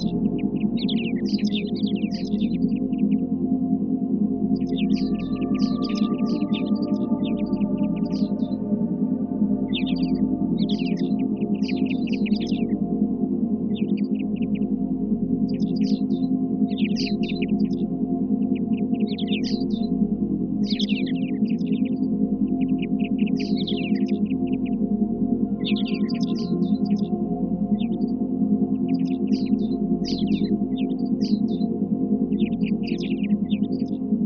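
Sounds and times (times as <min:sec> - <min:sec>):
forest sounds: 0:00.0 - 0:03.6, 0:04.2 - 0:19.9, 0:20.6 - 0:34.2.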